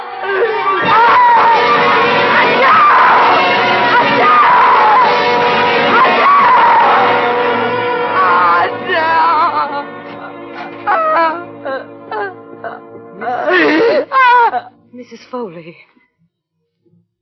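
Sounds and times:
woman screaming: 0.0 - 5.2, 5.9 - 9.8, 10.8 - 14.7
speech: 15.1 - 16.0.

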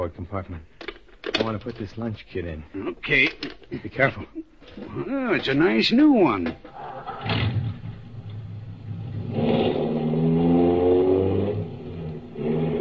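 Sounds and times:
speech: 0.0 - 0.8, 1.4 - 7.6
car engine driving along a road: 6.8 - 12.7.

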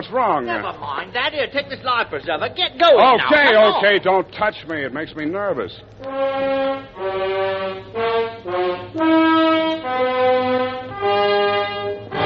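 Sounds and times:
speech: 0.1 - 9.4
ship's alarm horn blasts: 6.1 - 12.2.

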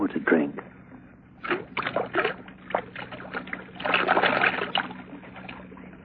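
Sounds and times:
speech: 0.1 - 0.7
whiskey glugging out of a bottle: 1.4 - 5.6.

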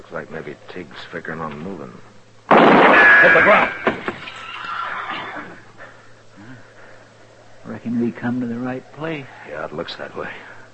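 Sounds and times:
speech: 0.1 - 2.2, 2.9 - 4.4, 7.6 - 10.5
saddled horse hitched at a corner whinnying: 4.2 - 5.6.

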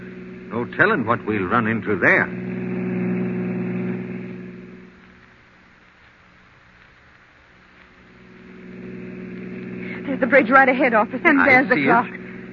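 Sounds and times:
car engine driving fast: 0.0 - 5.4, 8.0 - 12.5
speech: 0.5 - 2.5, 10.3 - 12.2.

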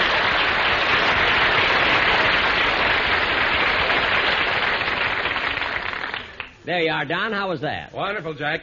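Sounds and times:
studio audience applause: 0.0 - 6.6
speech: 6.7 - 8.6.

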